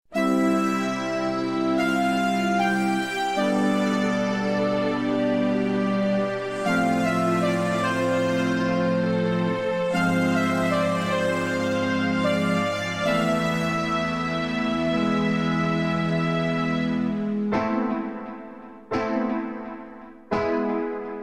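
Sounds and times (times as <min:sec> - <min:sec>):
instrumental karaoke playback: 0:00.1 - 0:21.2.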